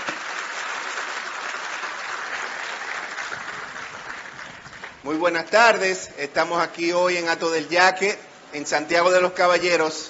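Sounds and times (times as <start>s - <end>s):
crowd clapping: 0.0s - 5.1s
speech: 5.0s - 10.0s.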